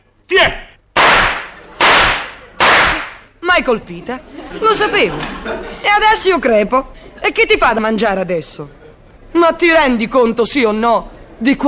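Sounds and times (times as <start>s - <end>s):
speech: 0.3s - 0.6s, 3.6s - 11.6s
revolver gunshots: 1.0s - 3.3s
laughter: 4.0s - 6.0s.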